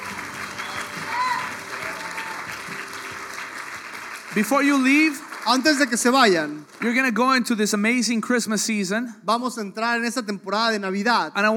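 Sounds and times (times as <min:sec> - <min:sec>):
audience applause: 0:00.0 - 0:07.4
speech: 0:04.4 - 0:11.5.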